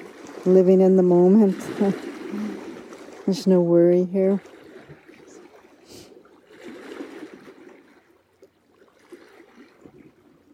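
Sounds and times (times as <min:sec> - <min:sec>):
small waves washing against rocks: 0:00.0 - 0:10.5
speech: 0:00.4 - 0:02.5, 0:03.3 - 0:04.5.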